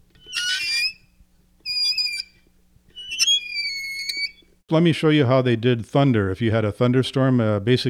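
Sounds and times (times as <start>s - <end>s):
squeaking door sound effect box: 0.2s - 1.0s, 1.7s - 2.4s, 3.0s - 4.5s
speech: 4.7s - 7.8s.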